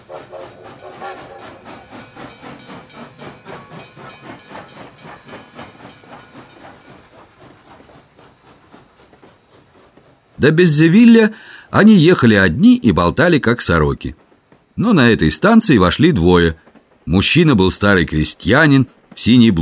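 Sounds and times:
express passenger train with second-class carriage chugging: 0.0s - 19.6s
speech: 10.4s - 14.2s, 14.8s - 19.6s.

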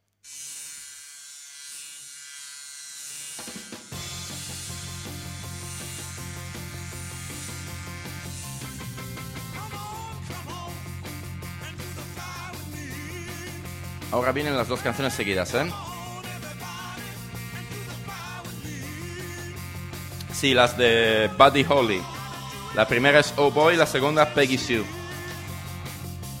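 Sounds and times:
stereo sound effect imitating a buzzing fly: 0.1s - 26.3s
band with drums and bass: 7.9s - 21.3s, 24.3s - 26.3s
speech: 14.1s - 15.9s, 20.4s - 25.0s.

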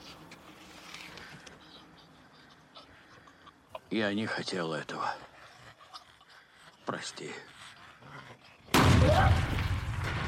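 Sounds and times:
speech: 3.9s - 5.3s, 6.9s - 7.6s
gunshot in a film fired into a creature's head: 8.7s - 10.2s.

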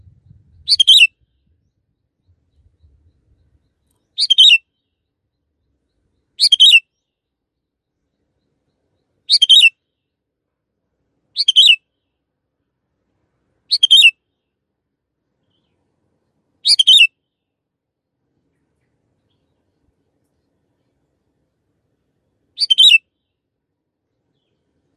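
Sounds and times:
canary chirping: 0.7s - 1.1s, 4.2s - 4.6s, 6.4s - 6.8s, 9.3s - 9.7s, 11.4s - 11.8s, 13.7s - 14.1s, 16.6s - 17.1s, 22.6s - 23.0s.

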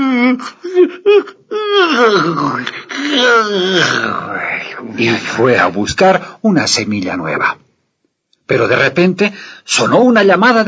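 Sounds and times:
loud yawn: 0.0s - 4.9s
speech: 0.3s - 7.6s, 8.5s - 10.6s.

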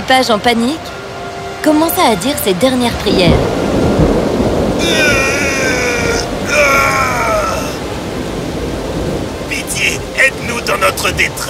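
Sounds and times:
storm with rumbling wind: 0.0s - 11.4s
speech: 0.1s - 1.0s, 1.6s - 3.6s, 4.8s - 5.1s, 10.8s - 11.4s.

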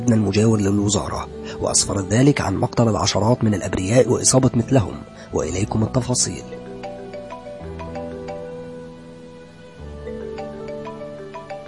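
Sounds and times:
speech: 0.0s - 6.7s
mobile phone melodic electronic ringtone: 6.5s - 8.8s, 10.2s - 11.6s.

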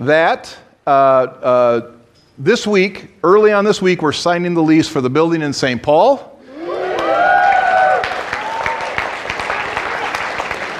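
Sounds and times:
speech: 0.0s - 6.3s
audience applause: 6.6s - 10.7s.

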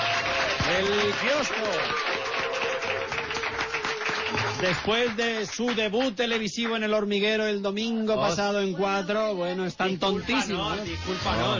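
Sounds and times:
applause: 0.0s - 7.0s
speech: 0.8s - 2.2s, 4.6s - 11.5s.

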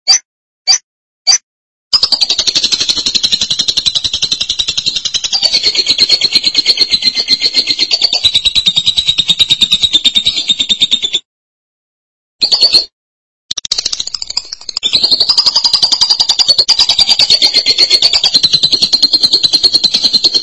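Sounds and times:
lovebird song: 2.0s - 11.2s, 13.5s - 20.4s.

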